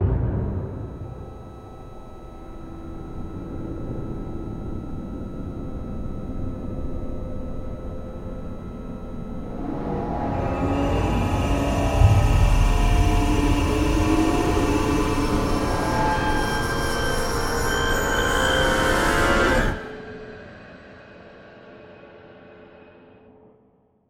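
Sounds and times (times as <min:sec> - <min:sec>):
suspenseful music: 0:00.0 - 0:07.2, 0:08.2 - 0:19.9.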